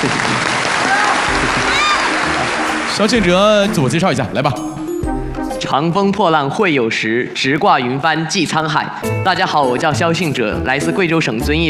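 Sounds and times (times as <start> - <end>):
audience applause at a televised quiz competition: 0.0 - 4.0
speech: 3.0 - 4.7, 5.7 - 11.6.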